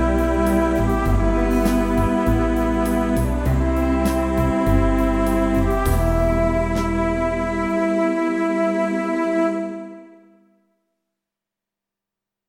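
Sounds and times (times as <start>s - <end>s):
big classic ballad theme in E minor: 0.0s - 10.4s.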